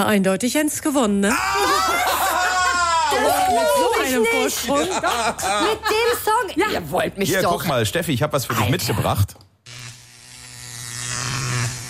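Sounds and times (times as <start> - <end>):
speech: 0.0 - 2.3, 3.1 - 9.5
laughter: 1.3 - 6.8
electric razor buzzing: 9.6 - 11.8.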